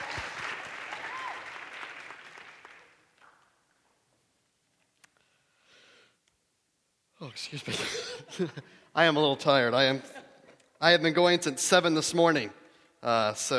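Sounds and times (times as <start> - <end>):
audience clapping: 0.0 - 3.6
speech: 7.3 - 10.2, 10.8 - 13.5
laughter: 7.6 - 8.8.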